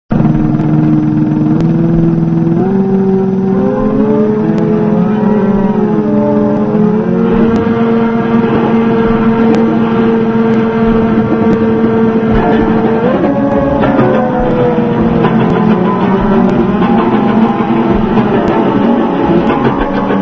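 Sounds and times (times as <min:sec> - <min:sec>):
city waking up: 0:00.1 - 0:20.2.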